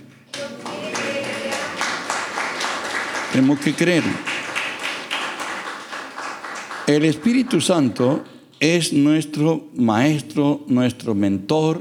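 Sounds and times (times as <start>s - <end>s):
audience applauding: 0.3s - 8.3s
speech: 3.4s - 4.3s, 6.9s - 11.7s.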